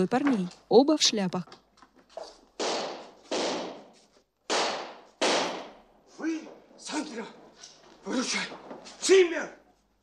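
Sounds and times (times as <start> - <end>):
speech: 0.0 - 1.6, 8.2 - 9.6
gunshots: 2.6 - 3.8, 4.5 - 5.8.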